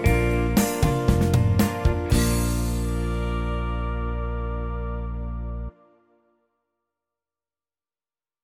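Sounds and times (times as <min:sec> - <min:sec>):
instrumental music: 0:00.0 - 0:06.5.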